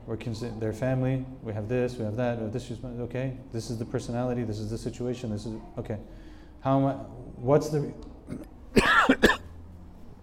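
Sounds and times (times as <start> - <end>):
speech: 0.0 - 9.3
person clearing throat: 8.3 - 9.5
person coughing in a choking fit: 8.3 - 9.5.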